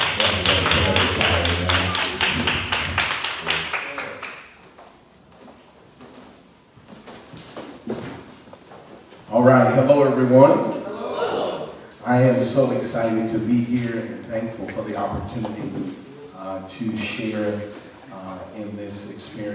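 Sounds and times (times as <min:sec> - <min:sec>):
audience clapping hands: 0:00.0 - 0:04.9
speech: 0:09.5 - 0:10.7, 0:12.2 - 0:19.5.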